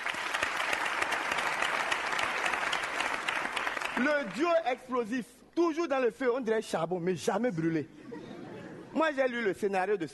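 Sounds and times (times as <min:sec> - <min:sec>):
audience applause: 0:00.0 - 0:04.4
speech: 0:04.0 - 0:08.0, 0:08.9 - 0:10.1.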